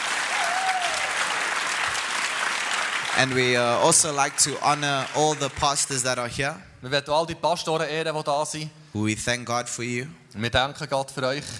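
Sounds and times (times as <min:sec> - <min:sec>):
audience applause: 0:00.0 - 0:06.1
speech: 0:03.2 - 0:11.5.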